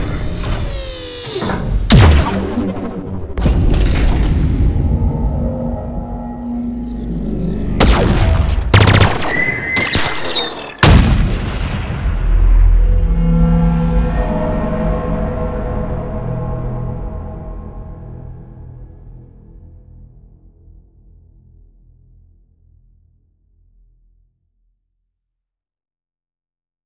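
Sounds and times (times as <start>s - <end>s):
sound effects montage: 0.0s - 15.7s.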